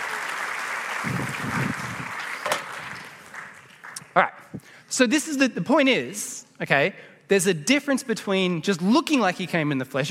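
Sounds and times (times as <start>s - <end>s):
audience applause: 0.0s - 4.2s
speech: 4.2s - 10.0s.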